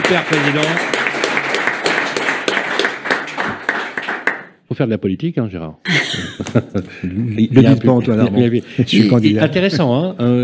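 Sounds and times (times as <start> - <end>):
audience applause: 0.0 - 4.5
speech: 0.1 - 1.0, 4.7 - 10.4
laughter: 5.9 - 10.2.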